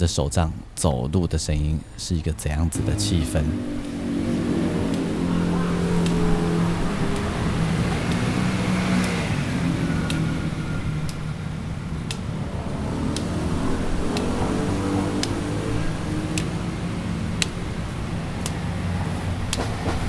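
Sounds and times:
speech: 0.0s - 3.9s
busy road traffic: 0.0s - 20.0s
cars passing back and forth: 0.0s - 20.0s.

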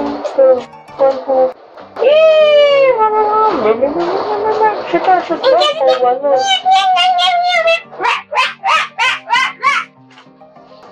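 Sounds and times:
speech: 0.5s - 8.2s
human voice imitating dog barks: 5.4s - 9.9s.

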